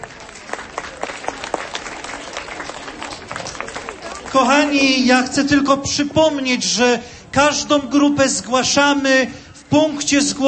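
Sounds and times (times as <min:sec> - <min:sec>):
crowd on Jasna Góra square clapping to welcome pilgrim groups: 0:00.0 - 0:05.0
speech: 0:04.4 - 0:10.4.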